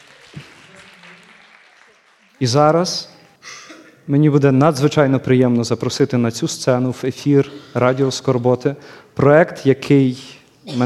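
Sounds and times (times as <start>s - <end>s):
audience applause: 0.0s - 3.4s
speech: 2.4s - 3.1s, 4.1s - 10.8s.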